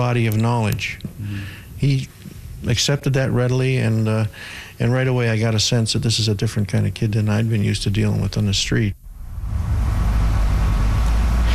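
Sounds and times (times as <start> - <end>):
speech: 0.0 - 9.0
tow vehicle engine rumble towing a wrecked 1985 burgundy Firebird: 9.0 - 11.5.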